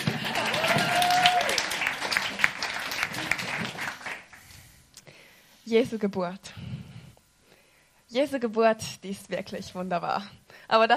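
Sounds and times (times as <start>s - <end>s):
crowd applause: 0.0s - 4.4s
whistle or cheer: 0.4s - 1.6s
speech: 5.7s - 6.6s, 8.1s - 10.9s.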